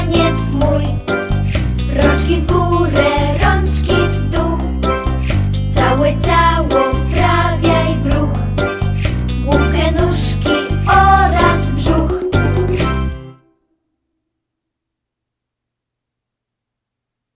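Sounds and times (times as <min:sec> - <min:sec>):
song: 0:00.0 - 0:13.5.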